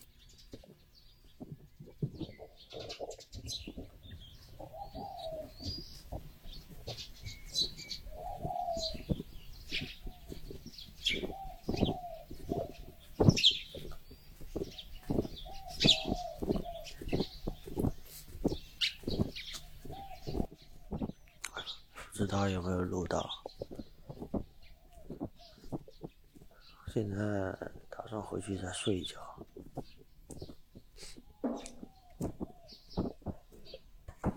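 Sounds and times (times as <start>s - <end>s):
morning birdsong outdoors in Kinmen: 0.0s - 34.3s
speech: 27.0s - 29.3s.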